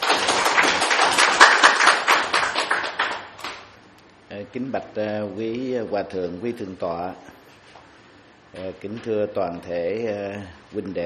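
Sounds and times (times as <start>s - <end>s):
audience applause: 0.0s - 3.7s
speech: 4.5s - 7.3s, 8.6s - 11.0s.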